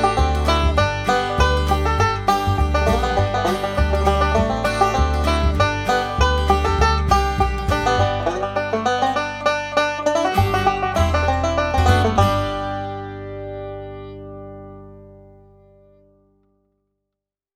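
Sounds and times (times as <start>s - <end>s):
banjo playing Dixie music: 0.0s - 15.7s.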